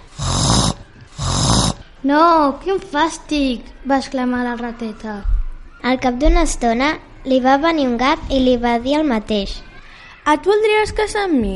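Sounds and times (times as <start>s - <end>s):
person imitating pig grunts: 0.0s - 1.8s
speech: 2.0s - 11.5s.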